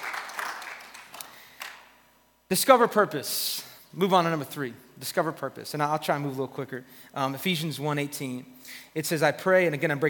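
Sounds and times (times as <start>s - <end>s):
audience clapping: 0.0s - 1.9s
speech: 2.5s - 10.0s.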